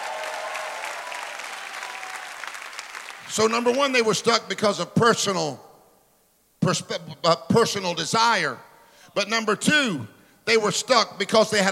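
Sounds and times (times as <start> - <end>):
church congregation clapping: 0.0 - 4.1
speech: 3.3 - 5.7, 6.6 - 11.7.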